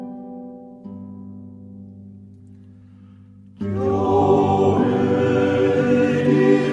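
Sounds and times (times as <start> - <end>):
Christmas yodel: 3.6 - 6.7.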